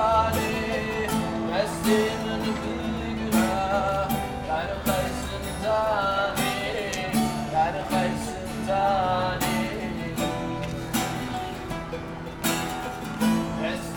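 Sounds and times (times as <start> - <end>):
buskers playing in Istanbul Galata: 0.0 - 13.9.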